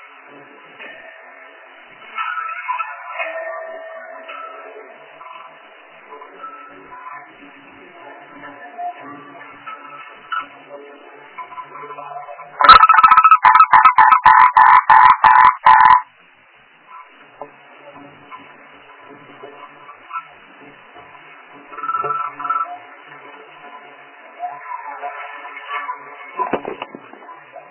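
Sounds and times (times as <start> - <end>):
frog croaking in rasping pulses: 12.6 - 16.1.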